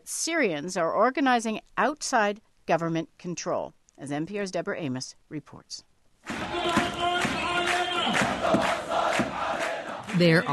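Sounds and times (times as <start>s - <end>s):
speech: 0.1s - 5.9s, 10.2s - 10.5s
crowd chanting protest slogans demanding an end to an autocratic regime: 6.3s - 10.5s.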